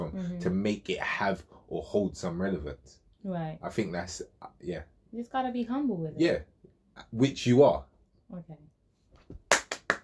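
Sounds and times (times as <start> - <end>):
speech: 0.4 - 8.7
hands clapping: 9.2 - 10.0.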